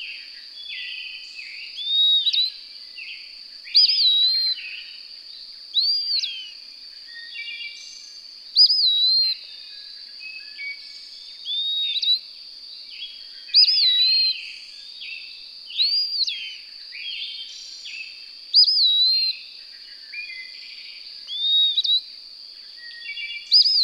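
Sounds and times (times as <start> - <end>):
songbird whistled song: 0.6 - 2.6, 3.7 - 4.8, 5.8 - 9.5, 10.2 - 12.2, 13.0 - 19.5, 20.1 - 22.1, 22.8 - 23.8.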